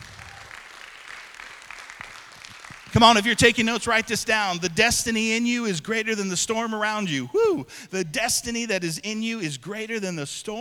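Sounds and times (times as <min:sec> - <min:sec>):
audience clapping and applauding: 0:00.0 - 0:05.0
speech: 0:03.0 - 0:10.5.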